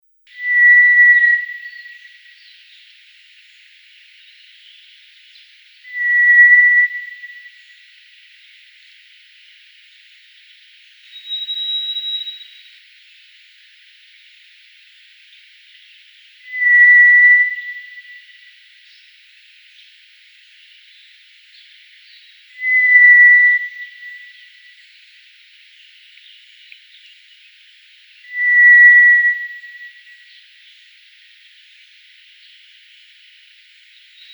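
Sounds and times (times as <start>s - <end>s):
White's thrush singing drawn-out pure whistles: 0.3s - 9.0s, 10.1s - 12.9s, 13.6s - 19.4s, 20.0s - 25.2s, 27.8s - 34.3s.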